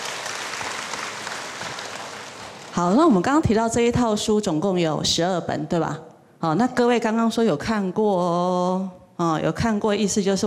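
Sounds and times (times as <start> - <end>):
audience applause at a presentation of a book series on Humanistic Buddhism: 0.0 - 2.8
speech: 2.8 - 10.4.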